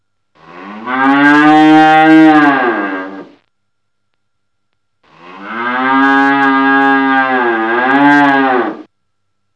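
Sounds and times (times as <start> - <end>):
cow mooing: 0.4 - 3.3, 5.1 - 8.9.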